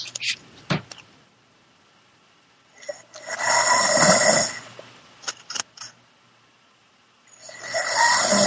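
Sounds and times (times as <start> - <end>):
person snoring: 2.8 - 4.7, 7.3 - 8.4.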